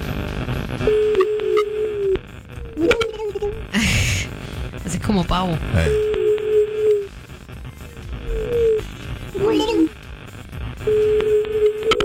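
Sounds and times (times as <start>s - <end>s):
noisy crackly telephone line: 0.0s - 3.8s, 4.4s - 12.0s
speech: 0.8s - 1.0s, 5.1s - 6.1s
telephone ringback tone over a noisy crackly line: 0.8s - 3.6s, 5.8s - 7.1s, 10.8s - 12.0s.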